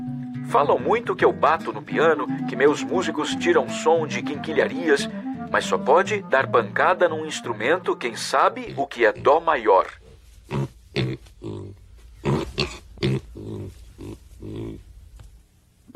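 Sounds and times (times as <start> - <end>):
speech: 0.5 - 10.7
pigs grunting and squealing: 8.6 - 9.6, 10.5 - 14.8.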